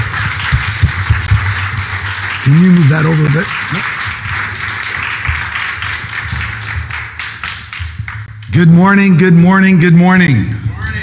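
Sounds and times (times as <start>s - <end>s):
audience applauding a bishop: 0.0s - 8.4s
speech: 2.5s - 4.0s, 8.6s - 10.6s.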